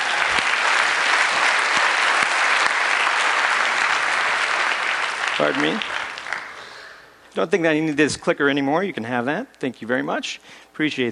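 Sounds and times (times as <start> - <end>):
audience applause: 0.0 - 6.9
speech: 5.4 - 6.0, 7.4 - 11.0.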